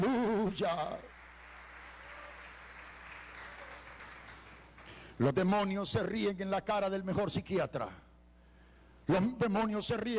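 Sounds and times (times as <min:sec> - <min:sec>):
speech: 0:00.5 - 0:01.2, 0:05.2 - 0:08.0, 0:09.1 - 0:10.1
audience applause: 0:01.0 - 0:05.0.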